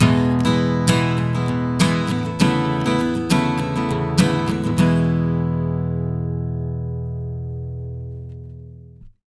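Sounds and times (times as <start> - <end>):
acoustic guitar loop of E major chords: 0.0 - 9.1.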